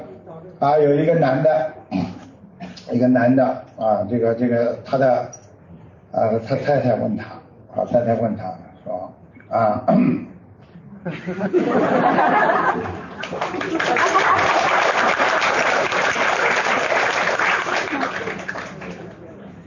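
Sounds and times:
speech: 0:00.5 - 0:02.1, 0:02.9 - 0:05.4, 0:06.1 - 0:08.6, 0:09.5 - 0:10.3, 0:11.0 - 0:14.2
laughter: 0:11.0 - 0:16.8
audience applause: 0:12.8 - 0:19.2.

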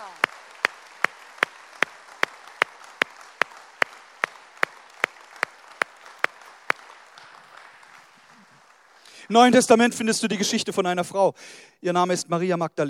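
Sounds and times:
audience applause: 0:00.0 - 0:09.2
speech: 0:09.3 - 0:12.8.

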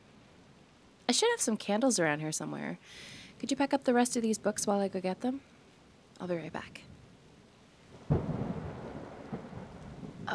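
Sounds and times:
steady rain: 0:00.0 - 0:10.3
speech: 0:01.1 - 0:05.5, 0:06.2 - 0:06.9
thunder rumbling: 0:07.9 - 0:10.3.

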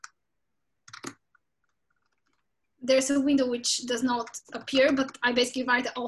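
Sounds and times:
faint computer mouse clicks while inserting a citation in Mendeley: 0:00.9 - 0:02.5, 0:04.2 - 0:05.3
speech: 0:02.8 - 0:06.0.

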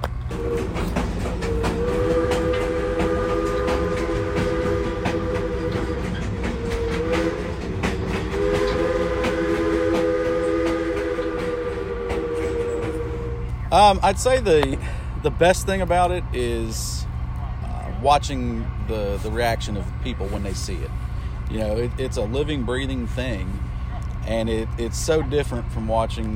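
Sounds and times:
Baldwin 0-6-0 steam locomotive running: 0:00.0 - 0:26.3
multi-toned steam locomotive whistle: 0:00.3 - 0:13.8
speech: 0:13.7 - 0:17.0, 0:18.0 - 0:23.6, 0:24.3 - 0:26.3.

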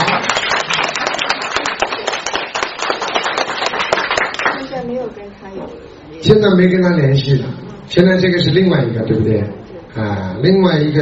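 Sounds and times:
audience clapping: 0:00.0 - 0:04.8
speech: 0:05.6 - 0:11.0.

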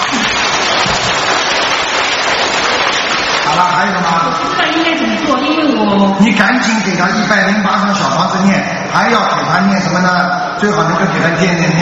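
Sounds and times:
applause: 0:00.0 - 0:04.5
speech: 0:03.8 - 0:11.8.

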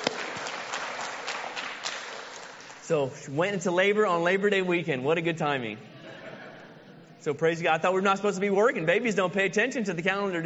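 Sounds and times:
church congregation clapping for a newborn baby's family: 0:00.0 - 0:03.1
speech: 0:02.9 - 0:05.9, 0:07.2 - 0:10.4.

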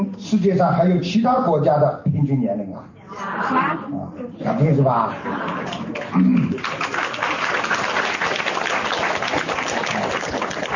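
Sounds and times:
speech: 0:00.3 - 0:06.9
laughter: 0:05.0 - 0:06.2
audience applause: 0:05.4 - 0:10.7.

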